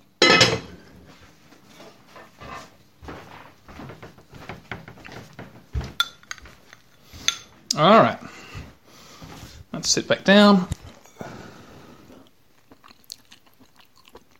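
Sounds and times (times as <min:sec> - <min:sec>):
metal lid set back onto a cooking pot of mushrooms: 0:00.2 - 0:00.8
kitchenware clinks and knocks: 0:00.2 - 0:00.9, 0:05.9 - 0:06.6
speech: 0:07.8 - 0:08.2, 0:09.9 - 0:10.8.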